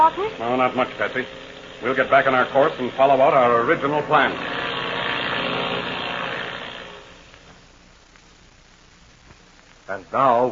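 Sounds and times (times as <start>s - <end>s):
speech: 0.0s - 4.6s, 9.9s - 10.5s
twin-engine airplane flying at night: 0.0s - 7.2s.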